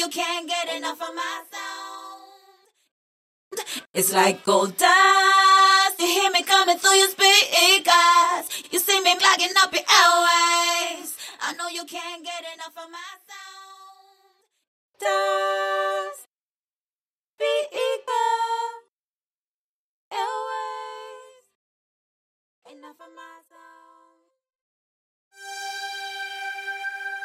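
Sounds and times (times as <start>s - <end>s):
a cappella singing: 0.0s - 2.7s, 3.9s - 14.3s, 15.0s - 16.3s, 17.4s - 18.9s, 20.1s - 21.6s, 22.6s - 24.3s.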